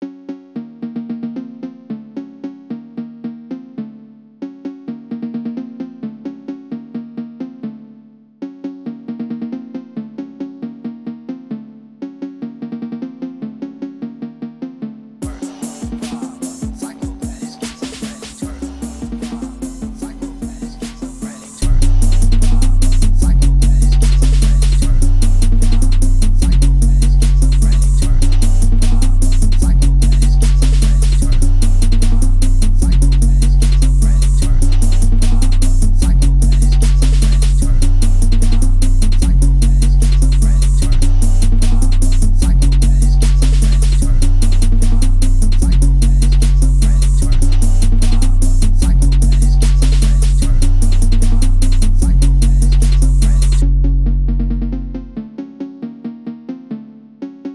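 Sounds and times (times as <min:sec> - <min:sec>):
phonk music: 0:15.2 - 0:57.5.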